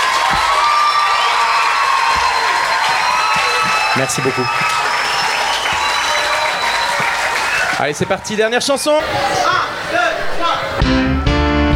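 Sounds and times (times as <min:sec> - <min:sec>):
audience applause: 0:00.0 - 0:08.4
audience cheering: 0:00.0 - 0:11.6
speech: 0:04.0 - 0:04.8, 0:07.8 - 0:11.1.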